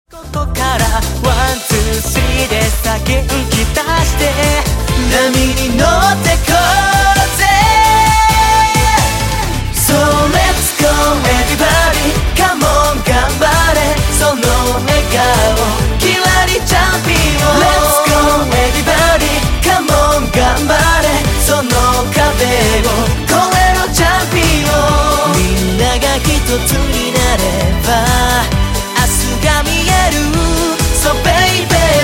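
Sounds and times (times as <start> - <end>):
cha cha cha music: 0.1 - 32.0.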